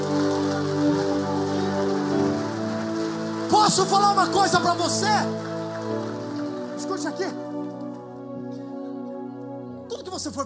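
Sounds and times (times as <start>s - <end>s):
audience applauding: 0.0s - 8.1s
speech: 3.8s - 5.5s, 6.8s - 7.5s, 10.2s - 10.4s.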